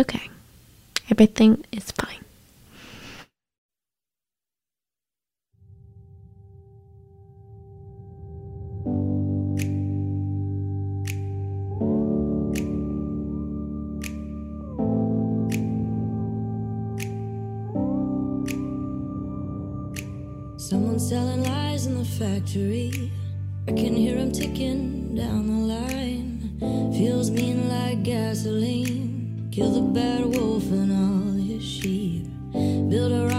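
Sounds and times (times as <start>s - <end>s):
speech: 0.0s - 0.4s, 1.1s - 2.2s, 20.7s - 33.3s
low drone in a recorded song's instrumental intro: 5.6s - 12.7s, 13.4s - 21.7s
loud sustained chords in a recorded song's instrumental intro: 5.9s - 21.7s.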